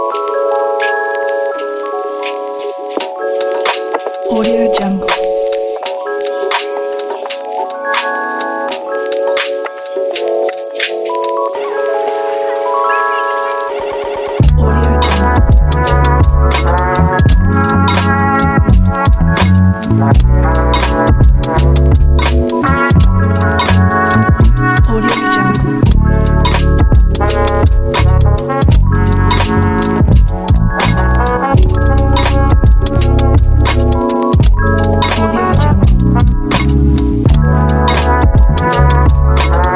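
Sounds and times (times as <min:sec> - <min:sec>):
autumn lofi beat: 0:00.0 - 0:39.7.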